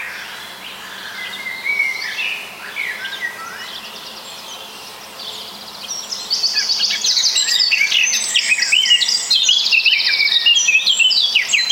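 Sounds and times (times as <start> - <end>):
birds chattering and twittering: 0.0 - 11.7.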